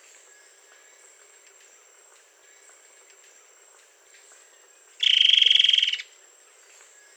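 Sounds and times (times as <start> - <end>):
bird pulsed trill: 5.0 - 6.0.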